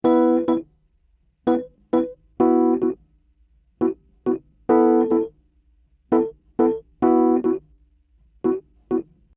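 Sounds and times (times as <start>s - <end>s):
Rhodes electric piano: 0.0s - 0.7s, 1.5s - 3.0s, 3.8s - 5.3s, 6.1s - 7.6s, 8.4s - 9.1s.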